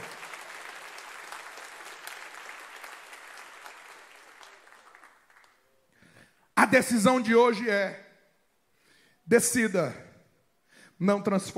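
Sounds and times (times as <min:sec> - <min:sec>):
audience applause: 0:00.0 - 0:05.6
speech: 0:06.6 - 0:08.0, 0:09.3 - 0:10.0, 0:11.0 - 0:11.5.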